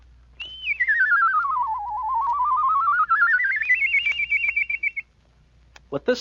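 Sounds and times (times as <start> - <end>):
whistle gliding in pitch: 0.4 - 5.1.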